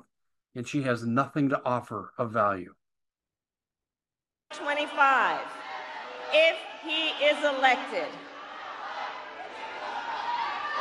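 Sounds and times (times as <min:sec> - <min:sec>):
speech: 0:00.5 - 0:02.8, 0:04.5 - 0:05.6, 0:06.3 - 0:08.2
crowd heckling: 0:04.5 - 0:10.7.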